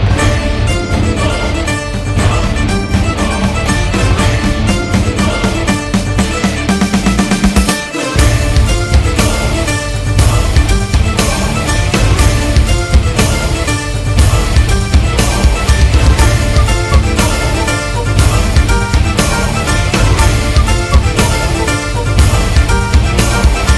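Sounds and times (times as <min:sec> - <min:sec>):
theme music ringtone: 0:00.2 - 0:23.7.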